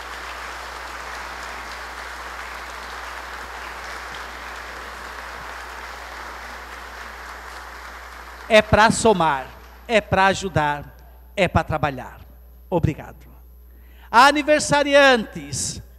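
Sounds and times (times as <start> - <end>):
audience clapping for new couples: 0.0 - 10.0
speech: 8.5 - 13.3, 14.1 - 15.9.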